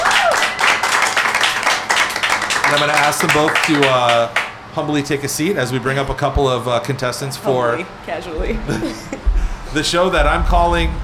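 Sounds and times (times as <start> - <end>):
person whooping: 0.0 - 0.8
audience applause: 0.0 - 4.6
speech: 2.7 - 11.0
laughter: 8.5 - 9.9.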